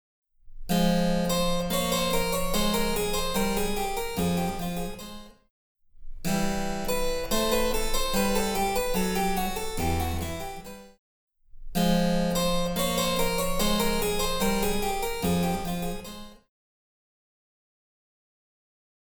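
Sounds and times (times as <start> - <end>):
harpsichord: 0.8 - 5.3, 6.3 - 10.9, 11.8 - 16.4.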